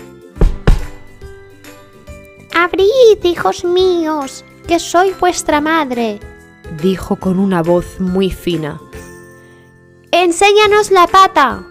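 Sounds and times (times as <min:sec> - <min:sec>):
knocking on a door: 0:00.4 - 0:01.3
speech: 0:02.6 - 0:09.0, 0:10.2 - 0:11.6.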